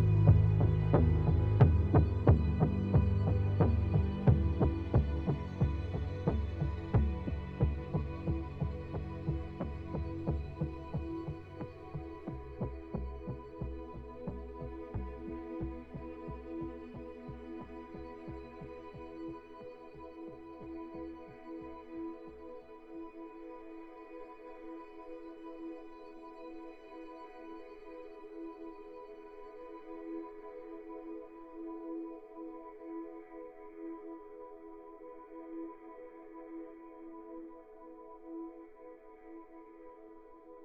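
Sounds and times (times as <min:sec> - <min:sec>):
suspense underscore music: 0:00.0 - 0:21.8.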